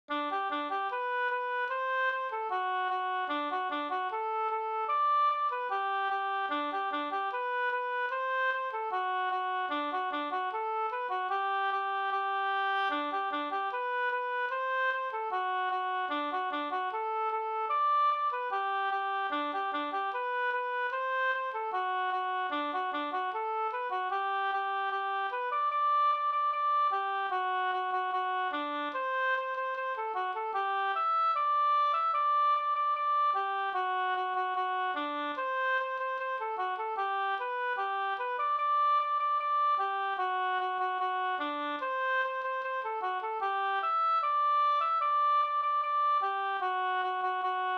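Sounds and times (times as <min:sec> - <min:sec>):
polka music: 0:00.1 - 0:47.7.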